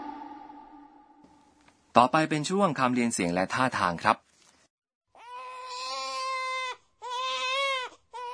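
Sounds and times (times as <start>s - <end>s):
speech: 1.9s - 4.3s
baby crying loudly: 5.1s - 8.3s.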